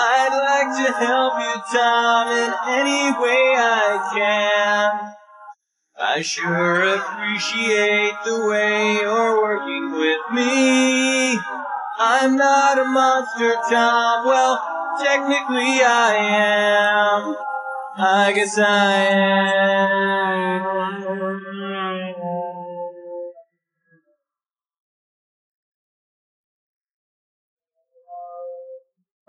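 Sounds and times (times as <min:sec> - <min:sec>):
person singing: 0:00.0 - 0:05.2, 0:06.0 - 0:23.3.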